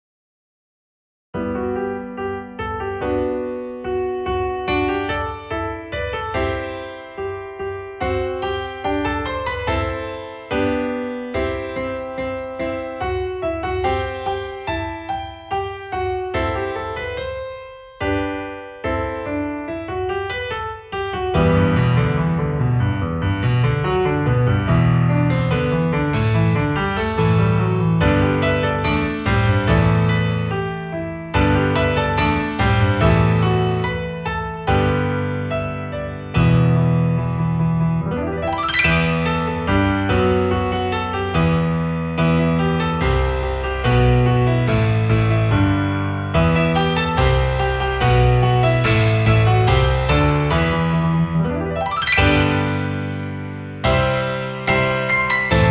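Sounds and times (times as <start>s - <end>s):
piano interlude: 1.4s - 55.6s.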